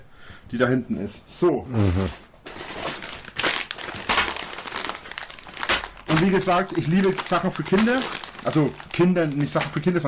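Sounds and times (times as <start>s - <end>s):
speech: 0.5s - 2.3s, 6.2s - 10.0s
crinkly plastic chip bags being put away: 1.9s - 10.0s.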